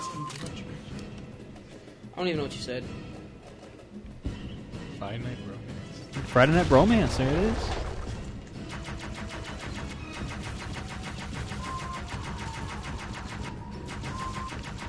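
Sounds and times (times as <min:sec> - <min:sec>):
speech: 0:02.2 - 0:03.1, 0:05.0 - 0:05.4, 0:06.2 - 0:07.8
rapid automatic gunfire from a gun in a video game: 0:08.7 - 0:14.8.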